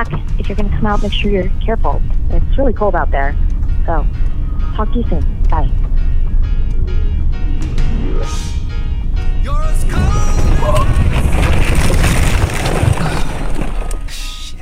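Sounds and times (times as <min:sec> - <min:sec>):
Jeep spinning off a snowy mountain road and high-centering on a snowbank: 0:00.0 - 0:14.6
speech: 0:00.5 - 0:05.9
rising whines: 0:01.6 - 0:11.5.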